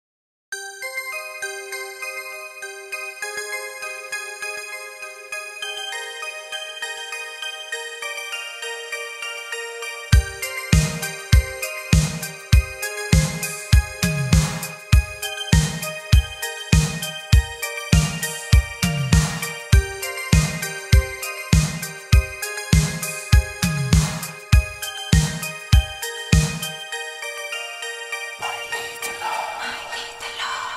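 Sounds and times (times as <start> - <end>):
Italo disco music: 10.2 - 26.8, 28.4 - 30.7.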